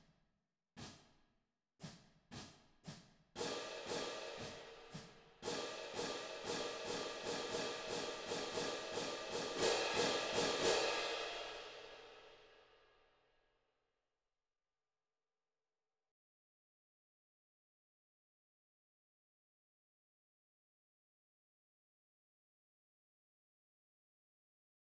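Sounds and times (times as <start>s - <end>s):
cymbals: 1.8s - 12.2s.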